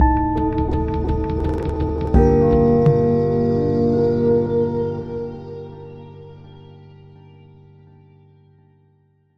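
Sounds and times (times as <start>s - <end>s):
funeral march music: 0.0s - 5.8s.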